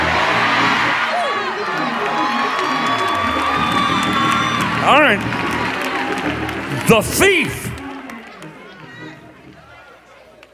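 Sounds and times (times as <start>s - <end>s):
crowd stomping: 0.0s - 8.2s
crowd shouting: 0.0s - 10.4s
speech: 5.1s - 5.4s, 6.9s - 7.5s.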